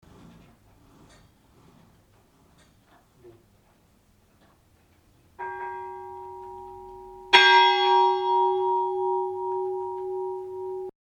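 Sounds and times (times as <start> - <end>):
bell ringing: 5.4 - 10.9.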